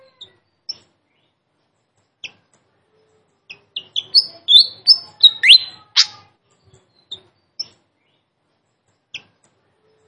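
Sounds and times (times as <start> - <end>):
flycatcher giving sharp high notes: 3.8 - 6.3.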